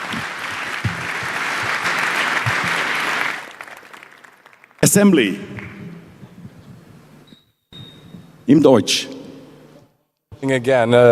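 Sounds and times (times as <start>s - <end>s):
audience applause: 0.0s - 5.1s
speech: 4.8s - 5.6s, 8.5s - 9.2s, 10.4s - 11.1s.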